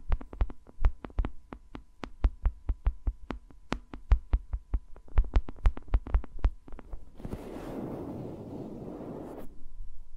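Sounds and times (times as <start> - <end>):
fingers tapping on microphones: 0.0 - 7.1.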